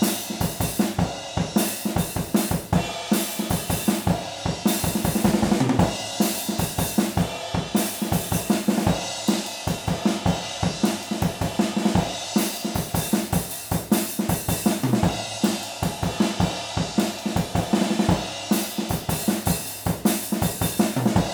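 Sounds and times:
drums recorded with stereo overhead microphones: 0:00.0 - 0:21.3.

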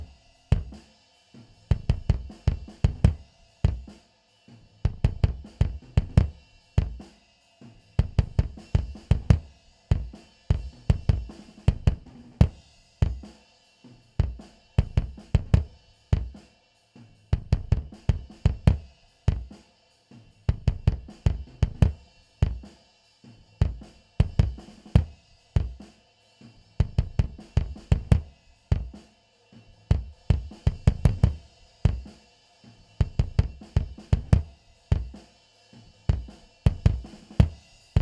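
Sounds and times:
bass drum: 0:00.0 - 0:00.8, 0:01.7 - 0:03.9, 0:04.8 - 0:07.0, 0:08.0 - 0:13.3, 0:14.2 - 0:16.3, 0:17.4 - 0:19.5, 0:20.5 - 0:22.7, 0:23.6 - 0:25.8, 0:26.8 - 0:29.0, 0:29.9 - 0:32.1, 0:33.0 - 0:35.2, 0:36.1 - 0:38.0.

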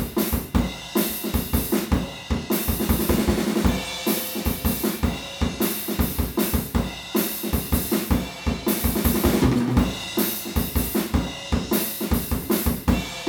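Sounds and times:
drums recorded with an omnidirectional PZM microphone: 0:00.0 - 0:13.2.

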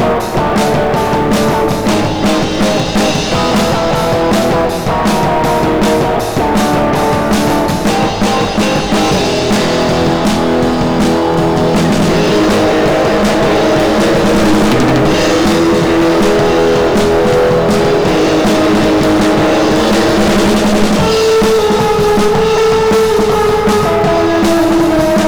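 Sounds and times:
overdriven monitor mix: 0:00.0 - 0:25.2.

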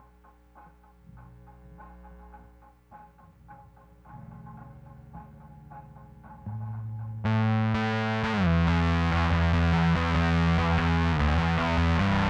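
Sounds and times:
direct input bass guitar line: 0:04.1 - 0:12.2.

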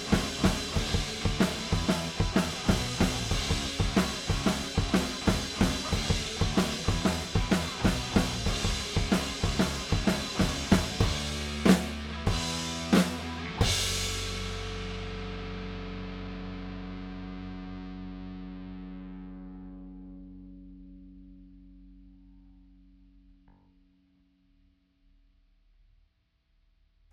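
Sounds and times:
drum stems: 0:00.0 - 0:17.8.

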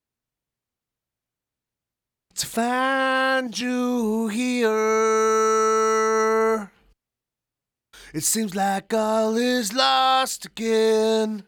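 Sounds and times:
vocals: 0:02.4 - 0:06.9, 0:08.0 - 0:11.4.

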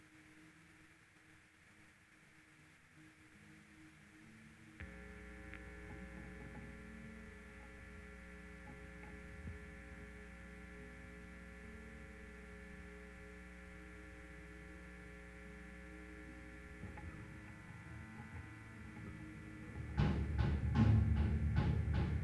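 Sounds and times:
M201 bass: 0:04.8 - 0:22.2.

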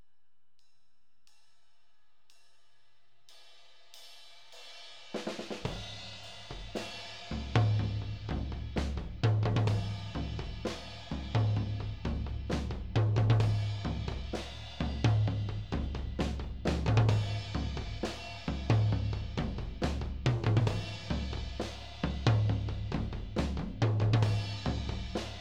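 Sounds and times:
tom drums: 0:05.1 - 0:25.3.

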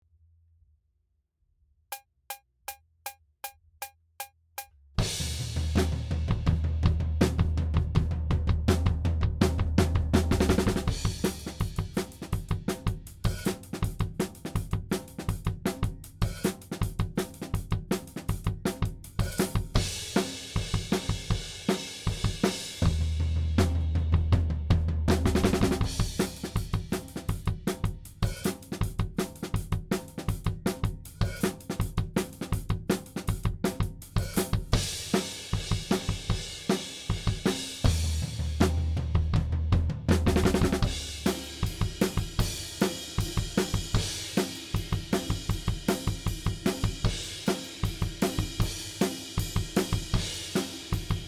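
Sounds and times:
drums: 0:03.4 - 0:51.2.

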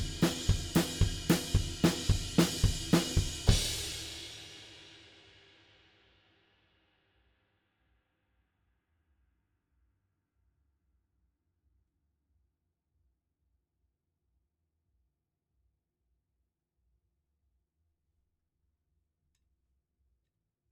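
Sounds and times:
drums playing: 0:00.0 - 0:05.1.

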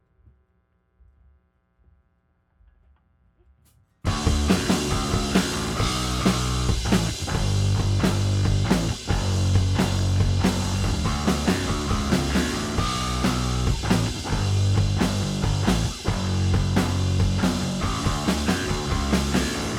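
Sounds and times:
drums: 0:02.7 - 0:19.7
bass: 0:04.1 - 0:19.7.

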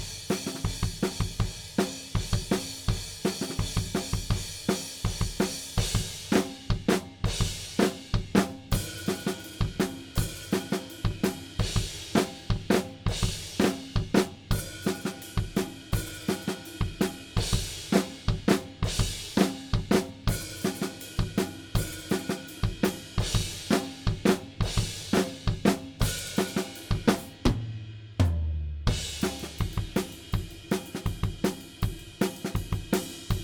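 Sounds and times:
drums: 0:00.0 - 0:33.4.

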